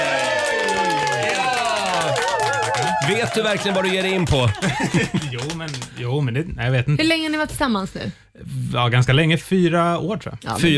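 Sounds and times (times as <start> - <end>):
cheering voices with wavering whoops: 0.0 - 5.3
small round of applause: 0.0 - 6.4
laughter: 2.8 - 6.4
speech: 3.1 - 10.7.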